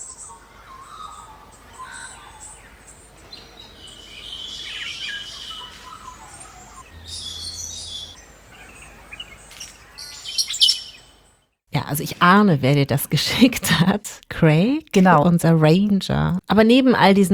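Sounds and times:
chorus of birds singing on an island morning: 0.0 - 11.4
speech: 11.9 - 17.3.

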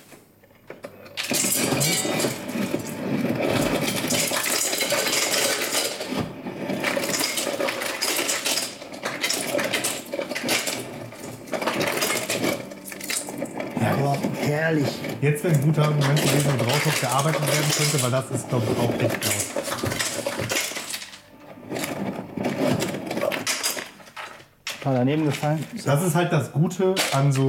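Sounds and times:
refrigerator ice dispenser dropping ice: 0.7 - 26.1, 26.9 - 27.4
speech: 14.7 - 19.4, 24.9 - 27.4.

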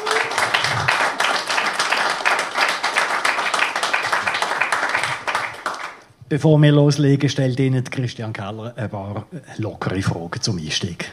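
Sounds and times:
audience applause: 0.0 - 6.0
speech: 6.3 - 11.1.

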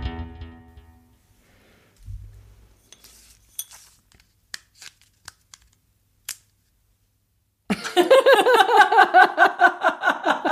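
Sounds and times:
pull tab tearing off packaging: 4.1 - 6.5
laughter: 7.7 - 10.4.

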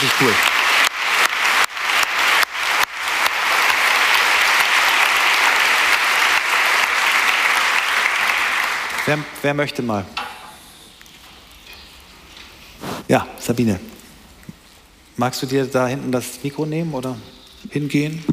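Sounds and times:
audience applause: 0.0 - 9.7
speech: 0.2 - 0.6, 9.1 - 10.2, 13.1 - 13.9, 15.2 - 18.3.

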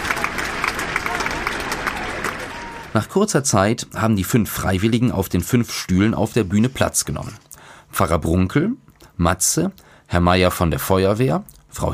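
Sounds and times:
audience applause welcoming five volunteers to the stage for a quiz: 0.0 - 3.0
speech: 3.0 - 11.9.

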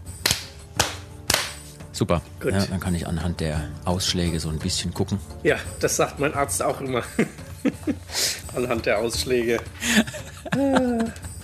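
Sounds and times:
hand claps for sync: 0.1 - 1.8
speech: 2.0 - 11.2
laughter: 6.8 - 8.1, 9.8 - 11.4.

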